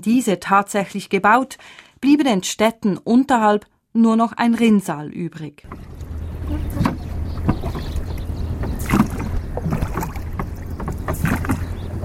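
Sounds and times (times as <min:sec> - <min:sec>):
speech: 0:00.0 - 0:05.9
rowboat oars splashing and knocking on river water: 0:05.6 - 0:12.0
steady low rumble: 0:05.7 - 0:12.0.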